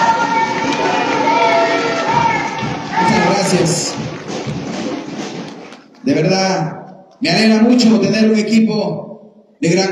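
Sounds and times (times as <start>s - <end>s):
audience applause: 0.0s - 6.4s
speech: 6.1s - 9.9s.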